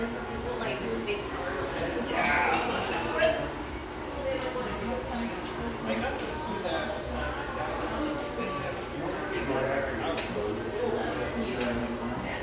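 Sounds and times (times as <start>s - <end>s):
overlapping voices and chatter in a coffeeshop: 0.0s - 12.4s.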